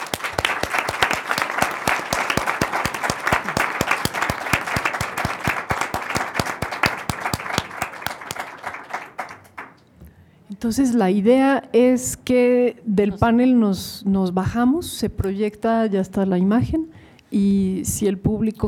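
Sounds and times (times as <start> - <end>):
audience applause: 0.0 - 9.8
speech: 10.6 - 18.6.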